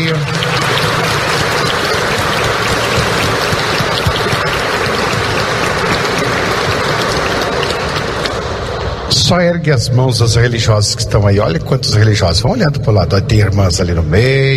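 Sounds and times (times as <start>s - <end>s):
crowd audience applause: 0.0s - 9.3s
speech: 9.3s - 14.5s.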